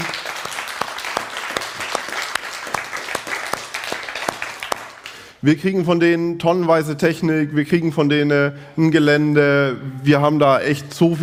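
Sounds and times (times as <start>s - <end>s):
audience applause: 0.0s - 5.3s
speech: 5.4s - 11.2s.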